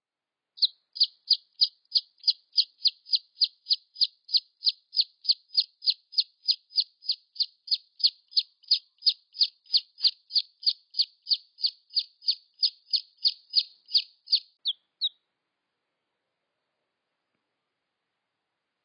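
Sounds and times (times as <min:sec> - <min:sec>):
red junglefowl chick peeps: 0:00.6 - 0:15.2.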